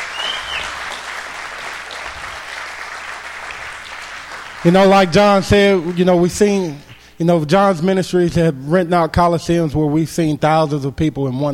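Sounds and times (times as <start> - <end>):
high whistle: 0.0 - 0.8
crowd clapping: 0.0 - 7.1
speech: 4.6 - 11.5.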